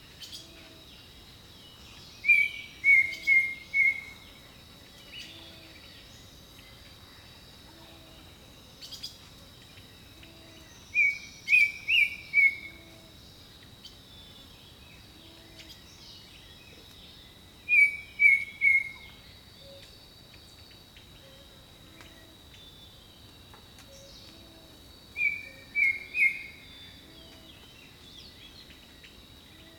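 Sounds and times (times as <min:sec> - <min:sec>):
high-pitched insect chorus hum: 0:00.0 - 0:29.7
bird whistled song: 0:02.2 - 0:04.3, 0:10.9 - 0:12.8, 0:17.7 - 0:19.8, 0:25.2 - 0:27.4.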